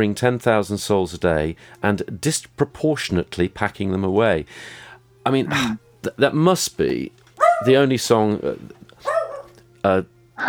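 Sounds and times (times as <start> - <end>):
speech: 0.0 - 8.8, 9.8 - 10.4
low steady hum: 0.0 - 10.4
dog barking: 7.4 - 7.9, 9.0 - 9.6.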